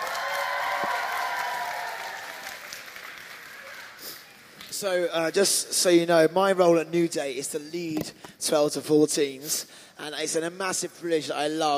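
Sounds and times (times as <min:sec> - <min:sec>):
audience round of applause: 0:00.0 - 0:04.7
speech: 0:04.8 - 0:11.7.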